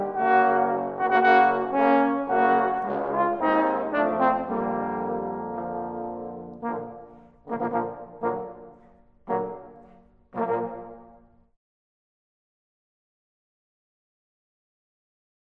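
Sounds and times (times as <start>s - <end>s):
trombone quartet playing a suite: 0.0s - 11.2s.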